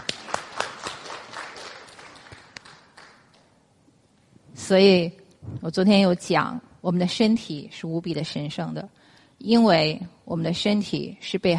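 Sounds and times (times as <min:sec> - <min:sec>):
small crowd applauding: 0:00.0 - 0:03.5
speech: 0:04.7 - 0:11.5.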